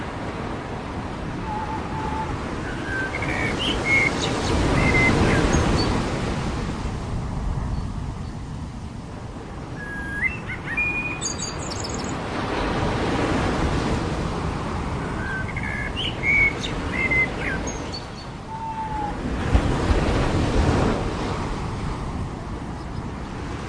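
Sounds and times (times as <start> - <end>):
ocean waves on the beach: 0.0 - 23.6
birds on the beach: 1.4 - 6.2, 9.8 - 12.8, 15.0 - 19.2.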